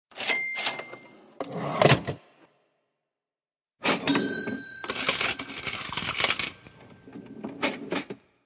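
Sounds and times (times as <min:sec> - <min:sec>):
cash register: 0:00.1 - 0:02.1, 0:03.8 - 0:08.2.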